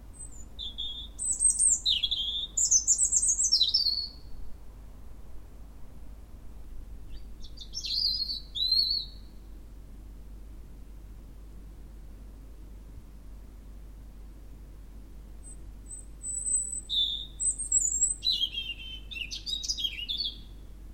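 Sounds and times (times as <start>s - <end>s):
European robin singing: 0.2s - 4.4s, 7.1s - 9.5s, 15.4s - 20.8s.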